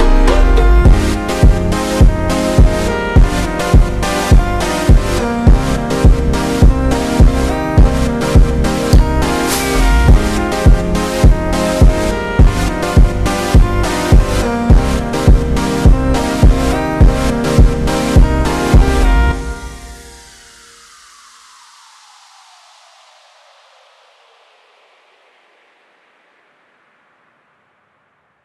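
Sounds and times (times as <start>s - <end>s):
slowed reverb montagem music: 0.0s - 20.7s.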